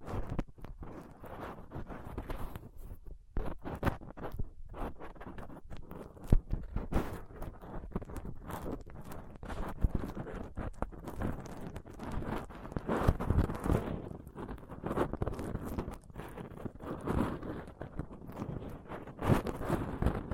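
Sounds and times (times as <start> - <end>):
dental pick, tweezers and cotton swab scratching a microphone: 0.0 - 20.3.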